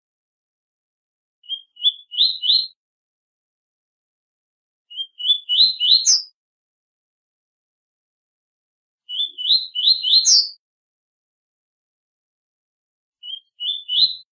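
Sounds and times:
double-collared seedeater singing rising whistled phrases: 1.4 - 2.8, 4.9 - 6.4, 9.1 - 10.6, 13.2 - 14.3.

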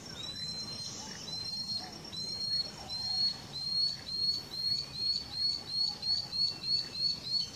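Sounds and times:
puffbird song of thin high upslurred whistles: 0.2 - 7.5.

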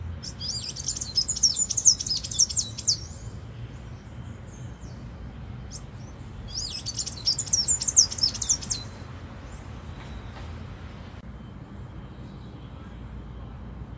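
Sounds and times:
tanager song of thin squeaky high twittering: 0.0 - 13.9.

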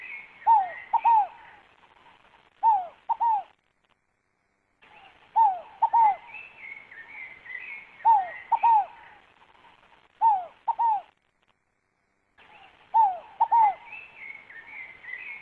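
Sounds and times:
scaled dove cooing: 0.0 - 1.6, 2.6 - 3.6, 5.4 - 6.3, 8.0 - 9.2, 10.2 - 11.1, 12.6 - 14.1.

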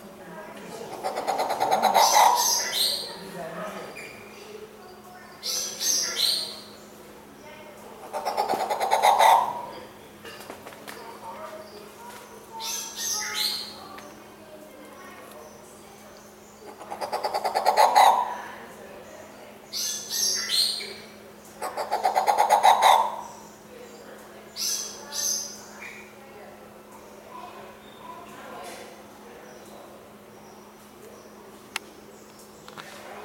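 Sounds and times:
violet turaco singing: 0.7 - 4.4, 5.3 - 7.0, 7.9 - 14.0, 15.0 - 26.2.

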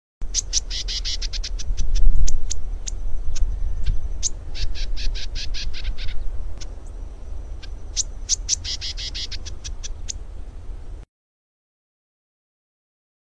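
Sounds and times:
lesser grass-finch buzzy calls: 0.2 - 10.3.

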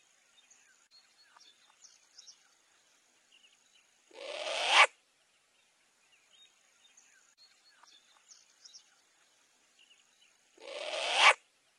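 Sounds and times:
short-eared owl screeching: 4.1 - 4.9, 10.6 - 11.4.

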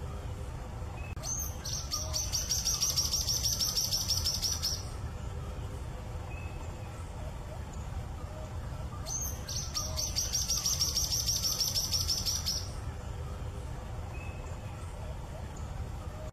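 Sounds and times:
social flycatcher song: 0.9 - 16.2.

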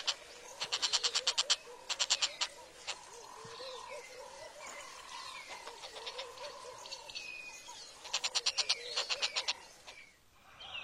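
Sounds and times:
Monteiro's hornbill calling with repeated clucking notes: 0.0 - 3.9, 5.0 - 7.0, 7.9 - 10.0.

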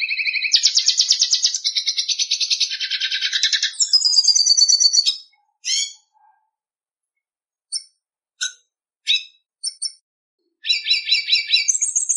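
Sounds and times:
red siskin singing with twittering phrases, chirps, trills and buzzy notes: 0.0 - 6.4, 7.7 - 10.0, 10.6 - 12.1.

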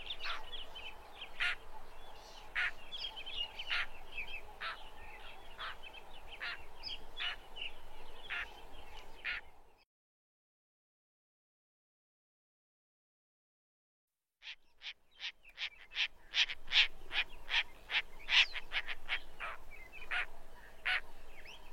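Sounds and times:
lilac-breasted roller grating calls: 0.0 - 0.6, 1.4 - 1.6, 2.5 - 2.8, 3.6 - 4.0, 4.6 - 4.9, 5.6 - 5.8, 6.4 - 6.6, 8.2 - 8.5, 9.2 - 9.4, 14.4 - 21.0.

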